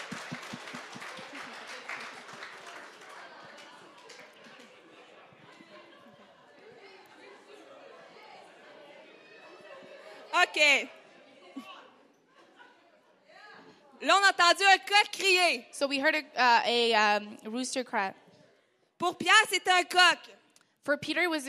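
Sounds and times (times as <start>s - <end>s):
audience applause: 0.0s - 5.8s
laughter: 0.0s - 13.3s
speech: 10.4s - 11.0s, 14.0s - 18.2s, 19.0s - 21.4s.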